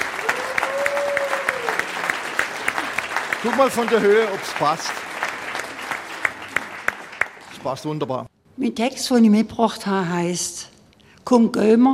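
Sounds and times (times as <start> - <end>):
audience applause: 0.0 - 7.8
speech: 3.4 - 5.1, 7.6 - 10.7, 11.3 - 11.9.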